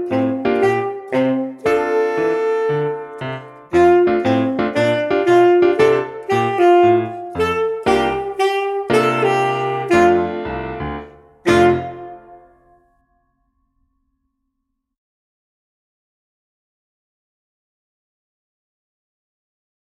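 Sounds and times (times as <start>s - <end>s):
jazz tenor saxophone: 0.0s - 12.8s.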